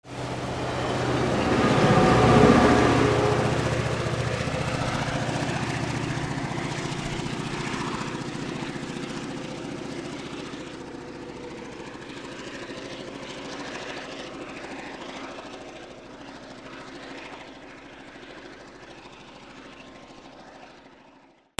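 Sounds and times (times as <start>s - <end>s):
trains: 0.0s - 16.5s.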